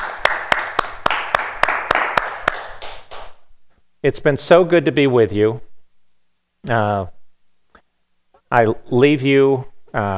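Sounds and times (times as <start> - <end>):
audience applause: 0.0 - 3.3
speech: 4.0 - 5.7, 6.6 - 7.2, 8.5 - 10.1.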